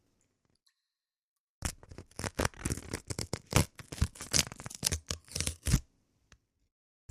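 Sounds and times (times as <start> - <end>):
paper envelope holding a check ripped open by hand: 1.6 - 5.8.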